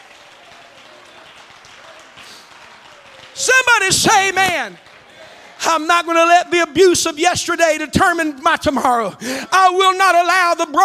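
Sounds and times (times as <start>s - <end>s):
crowd clapping: 0.0s - 6.6s
speech: 3.4s - 4.9s, 5.6s - 10.8s.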